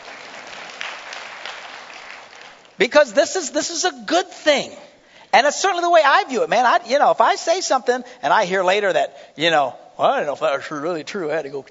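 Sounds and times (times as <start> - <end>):
crowd clapping: 0.0 - 2.8
speech: 2.8 - 11.7.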